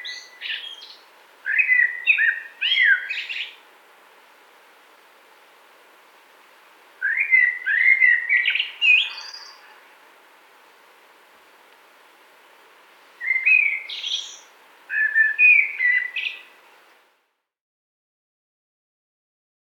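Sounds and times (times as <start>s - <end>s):
common blackbird song: 0.0s - 3.6s, 7.0s - 9.9s, 13.2s - 16.6s.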